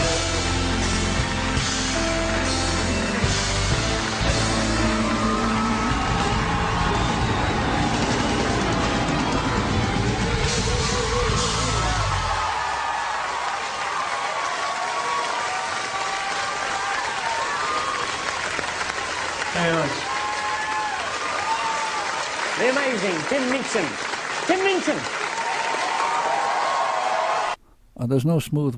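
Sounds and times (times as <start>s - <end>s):
sustained audience applause: 0.0s - 27.6s
speech: 23.4s - 25.2s, 28.0s - 28.7s.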